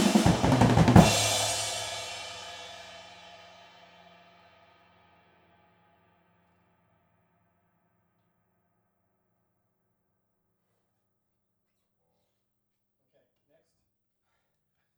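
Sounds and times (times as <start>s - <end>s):
drums: 0.0s - 4.8s.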